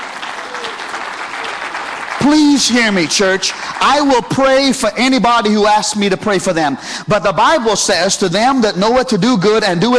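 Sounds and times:
audience clapping: 0.0 - 5.5
speech: 2.2 - 9.9.

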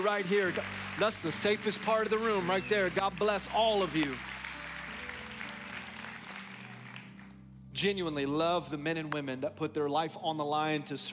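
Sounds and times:
speech: 0.0 - 4.3, 7.8 - 11.1
crowd applauding: 0.0 - 7.4.

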